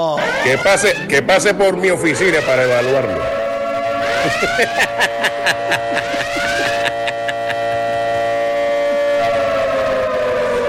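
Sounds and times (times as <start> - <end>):
alarm siren: 0.1 - 10.6
speech: 0.5 - 3.3, 4.2 - 6.0
laughter: 4.0 - 8.3.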